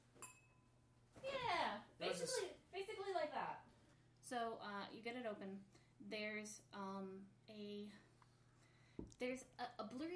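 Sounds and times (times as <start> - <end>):
flicked crystal glass ringing out: 0.2 - 0.8
speech: 2.0 - 3.6, 4.2 - 8.1, 9.2 - 10.1.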